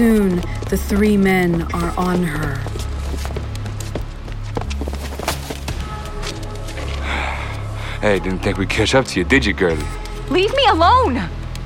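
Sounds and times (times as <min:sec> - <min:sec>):
speech: 0:00.0 - 0:02.7, 0:08.0 - 0:11.4
footsteps of a woman running away holding groceries: 0:00.0 - 0:07.4.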